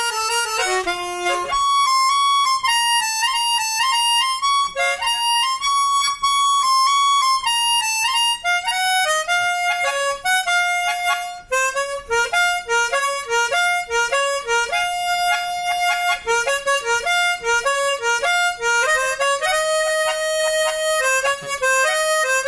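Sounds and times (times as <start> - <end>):
harmonica song: 0.0 - 22.4.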